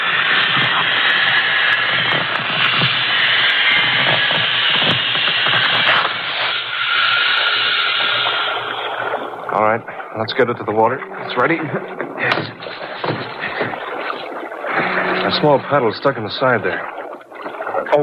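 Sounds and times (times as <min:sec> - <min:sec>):
gas hissing through valve inflating rubber raft: 0:00.0 - 0:16.8
rubber raft rubbing and creaking: 0:03.7 - 0:18.0
speech: 0:09.6 - 0:11.8, 0:15.3 - 0:17.0.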